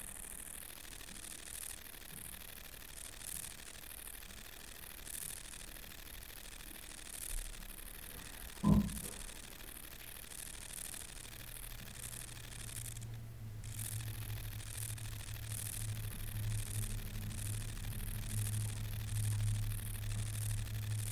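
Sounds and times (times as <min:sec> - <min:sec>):
Long-winged conehead buzzing song: 0:05.5 - 0:21.0
soft knock: 0:08.6 - 0:09.2
low hum: 0:11.4 - 0:21.0.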